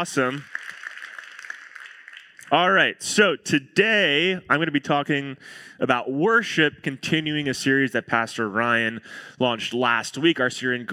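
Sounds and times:
speech: 0.0 - 0.5, 2.5 - 10.9
audience applause: 0.0 - 2.6.

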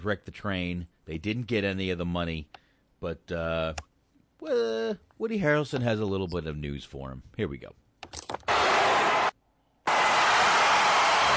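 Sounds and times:
speech: 0.0 - 8.3
crowd cheering at New Year's: 8.5 - 11.3.

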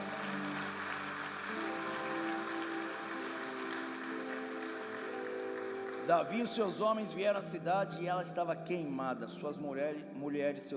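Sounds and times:
audience applauding: 0.0 - 7.4
speech: 6.1 - 10.7.

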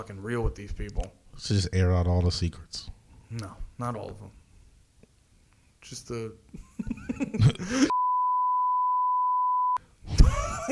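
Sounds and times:
speech: 0.0 - 4.4, 5.8 - 8.0
laughter: 6.6 - 7.9, 10.1 - 10.7
censor beep tone: 7.9 - 9.8.

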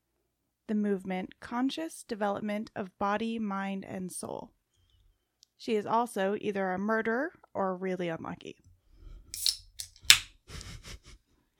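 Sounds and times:
speech: 0.7 - 4.6, 5.6 - 8.6
soda water container opening fizz: 9.3 - 10.3.

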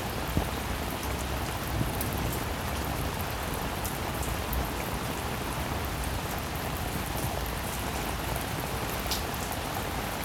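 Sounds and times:
gentle rain pattering: 0.0 - 10.2.

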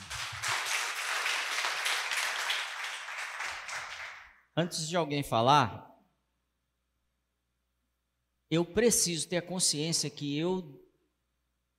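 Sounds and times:
crowd clapping: 0.0 - 4.4
speech: 4.6 - 5.9, 8.5 - 10.8.

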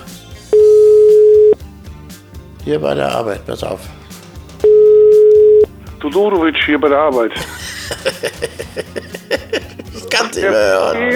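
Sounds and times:
telephone line tone while placing a call: 0.6 - 1.6, 4.6 - 5.7
speech: 2.6 - 4.0, 6.0 - 9.0, 10.3 - 11.1
laughter: 7.3 - 11.1.

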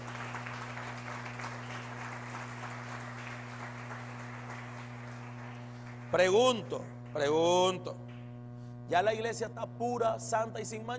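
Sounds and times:
audience clapping: 0.0 - 8.4
speech: 6.1 - 8.0, 8.9 - 10.9.

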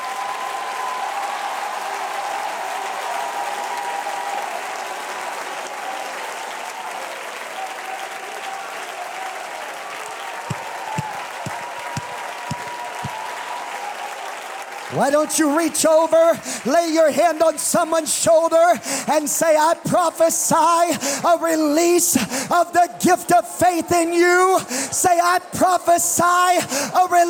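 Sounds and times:
audience shouting: 0.0 - 17.1
audience clapping: 0.0 - 27.2
speech: 14.9 - 27.2.

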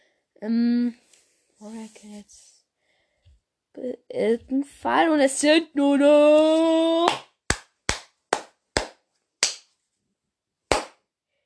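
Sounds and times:
speech: 0.4 - 1.0, 1.6 - 2.6, 3.8 - 7.2
sharp hand claps: 6.6 - 9.7, 10.7 - 11.0.

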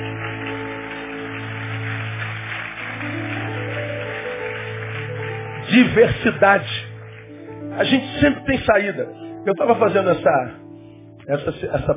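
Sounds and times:
crowd applauding: 0.0 - 8.8
speech: 5.8 - 6.9, 7.8 - 10.6, 11.2 - 11.9.

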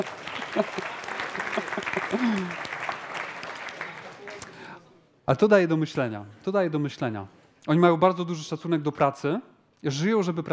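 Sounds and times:
speech: 0.0 - 1.0, 1.8 - 2.7, 5.3 - 10.5
laughter: 0.0 - 2.9
applause: 0.0 - 4.8.

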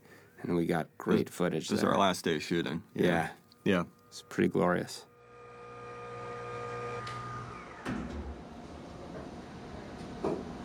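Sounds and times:
speech: 0.4 - 5.1
cobalt radiation therapy machine humming with a tonal whine: 5.2 - 10.6.

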